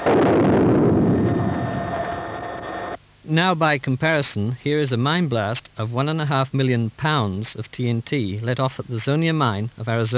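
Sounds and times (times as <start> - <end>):
seismic recording of a magnitude-one earthquake 20 miles away, roaring rumble: 0.0 - 3.0
faint steady tones in a seismic recording: 0.0 - 10.1
speech: 3.3 - 10.1.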